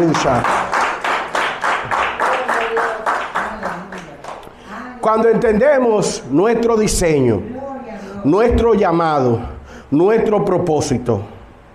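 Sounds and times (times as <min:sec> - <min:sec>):
speech: 0:00.0 - 0:00.6, 0:05.0 - 0:07.6, 0:08.2 - 0:11.3
audience applause: 0:00.0 - 0:04.5.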